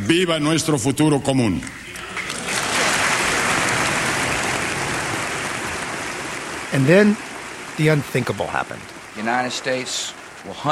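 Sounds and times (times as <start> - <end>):
speech: 0.1 - 1.9, 6.7 - 10.6
rapturous applause in Congress: 1.9 - 8.7.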